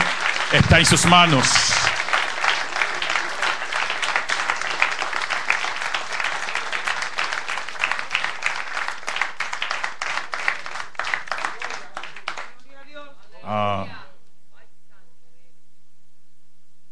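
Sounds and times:
crowd applauding: 0:00.0 - 0:12.6
speech: 0:00.5 - 0:02.0.

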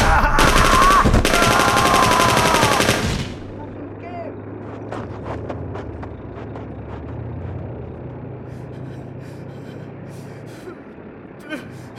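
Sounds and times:
rapid automatic gunfire from soldiers in a war drama: 0:00.0 - 0:03.4.

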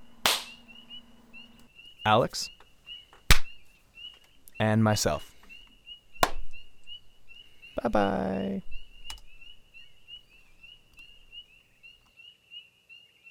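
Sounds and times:
faint steady whine: 0:00.0 - 0:12.0
hand claps in front of microphone: 0:00.2 - 0:00.6
speech: 0:02.0 - 0:02.6, 0:04.6 - 0:05.3, 0:07.8 - 0:08.7.

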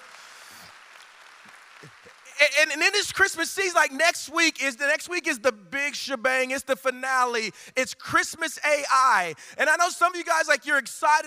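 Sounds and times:
crowd clapping: 0:00.0 - 0:03.2
speech: 0:01.8 - 0:11.2.

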